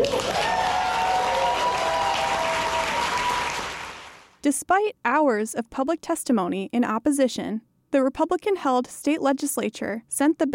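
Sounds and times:
crowd of spectators applauding thunderously: 0.0s - 4.4s
speech: 4.4s - 10.5s.

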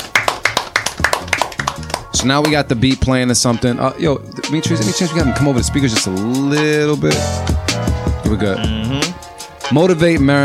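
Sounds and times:
applause: 0.0s - 2.7s
speech: 2.2s - 10.4s.

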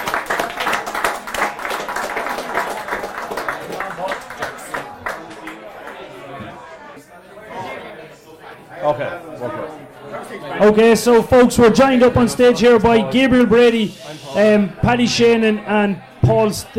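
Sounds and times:
audience clapping: 0.0s - 6.1s
loud murmur of crowd chatter: 0.0s - 16.7s
speech: 10.6s - 16.7s.

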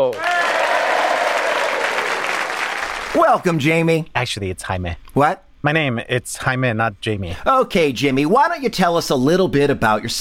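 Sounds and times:
audience applause: 0.0s - 3.2s
speech: 3.2s - 10.1s.

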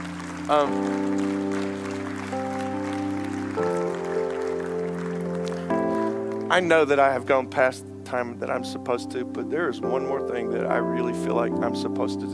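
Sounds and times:
audience clapping: 0.0s - 6.9s
sustained organ or keyboard chords: 0.0s - 12.3s
speech: 0.5s - 1.7s, 6.5s - 12.3s.

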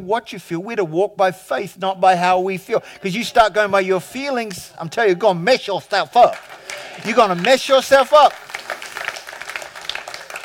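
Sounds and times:
speech: 0.0s - 8.4s
crowd audience clapping: 5.8s - 10.4s.

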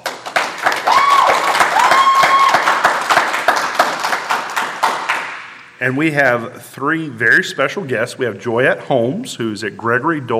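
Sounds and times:
live studio audience applause: 0.0s - 5.4s
speech: 5.8s - 10.3s.

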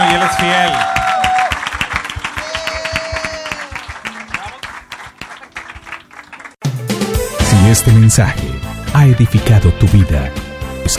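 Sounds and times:
audience applause: 0.0s - 6.6s
speech: 7.7s - 10.9s.

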